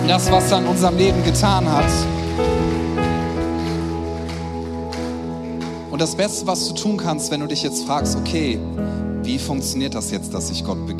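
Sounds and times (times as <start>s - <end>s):
audience applause: 0.0s - 6.4s
speech: 0.1s - 2.6s, 6.0s - 10.9s.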